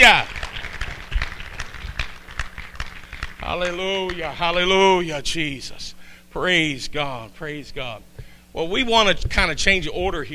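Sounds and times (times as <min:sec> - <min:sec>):
speech: 0:00.0 - 0:00.3, 0:03.5 - 0:10.3
audience clapping in rhythm: 0:00.0 - 0:04.6.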